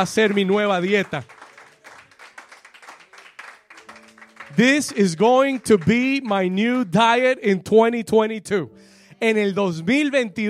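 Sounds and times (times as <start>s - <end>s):
speech: 0.0s - 1.4s, 4.5s - 10.4s
crowd applauding: 0.0s - 6.7s.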